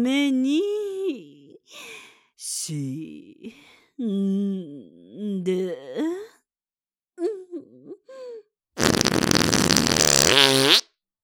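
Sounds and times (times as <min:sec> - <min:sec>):
speech: 0:00.0 - 0:06.2
fart: 0:08.8 - 0:10.9.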